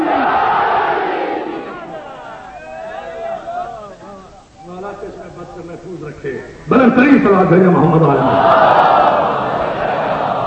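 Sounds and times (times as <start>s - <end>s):
crowd shouting the Naara-e-Haidari slogan in an imambargah: 0.0s - 4.3s, 8.2s - 10.4s
murmur of voices and talk: 0.0s - 10.4s
speech: 6.2s - 8.9s.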